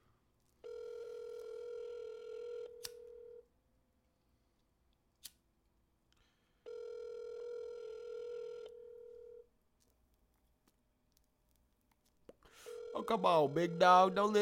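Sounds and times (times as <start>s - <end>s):
phone call ringing tone: 0.6s - 3.4s, 6.7s - 9.5s, 12.6s - 14.4s
speech: 13.0s - 14.4s.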